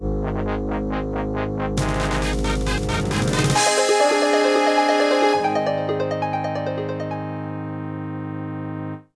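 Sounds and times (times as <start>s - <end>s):
MIDI music: 0.2s - 9.0s.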